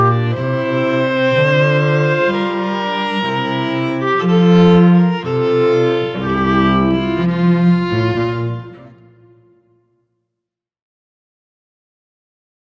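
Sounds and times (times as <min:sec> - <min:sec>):
string trio playing an air: 0:00.0 - 0:09.7.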